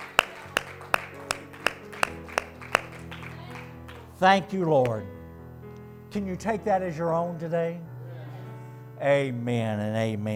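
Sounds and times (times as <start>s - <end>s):
audience clapping hands in unison: 0.0s - 4.2s
speech: 4.2s - 5.2s, 6.1s - 7.9s, 9.0s - 10.3s.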